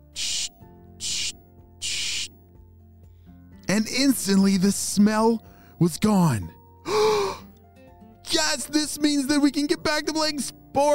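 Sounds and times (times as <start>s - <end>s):
spray bottle of Bubbleberry soap spraying sports equipment in a backyard: 0.0s - 2.4s
speech: 3.8s - 6.6s, 8.6s - 10.9s.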